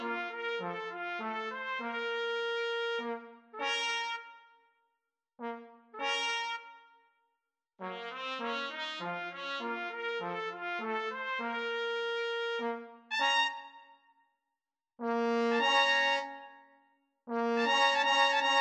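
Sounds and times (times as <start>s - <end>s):
trombone: 0.0s - 4.3s, 5.4s - 6.7s, 7.8s - 13.6s, 15.0s - 16.3s, 17.3s - 18.5s
two trumpets: 0.0s - 4.4s, 5.5s - 6.8s, 7.8s - 13.8s, 15.1s - 16.4s, 17.4s - 18.5s.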